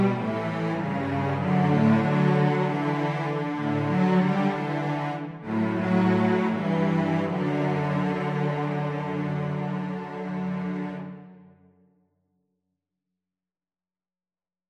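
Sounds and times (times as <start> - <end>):
cello duet: 0.0 - 11.6.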